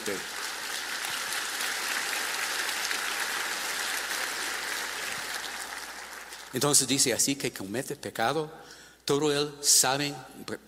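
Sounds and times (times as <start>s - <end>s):
audience applauding: 0.0s - 6.6s
speech: 6.5s - 10.6s.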